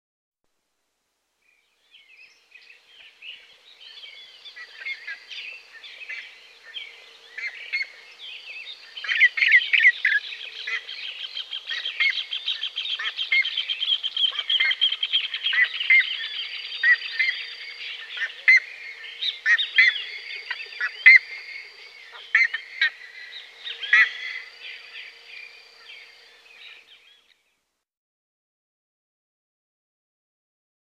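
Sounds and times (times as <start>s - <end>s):
buff-necked ibis calling: 2.1s - 27.4s.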